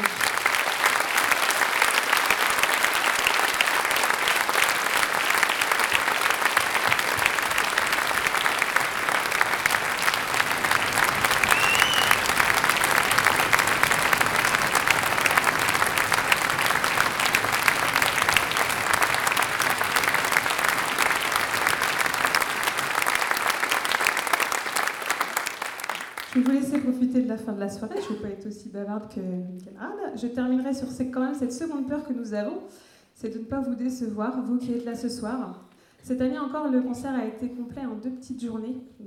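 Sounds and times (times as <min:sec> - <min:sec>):
large concert audience applause: 0:00.0 - 0:26.6
speech: 0:27.6 - 0:39.0.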